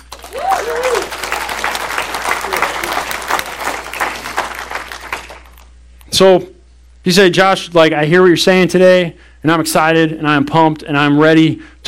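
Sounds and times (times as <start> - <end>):
audience applause: 0.0 - 5.6
person whooping or cheering: 0.2 - 3.5
speech: 6.2 - 11.8.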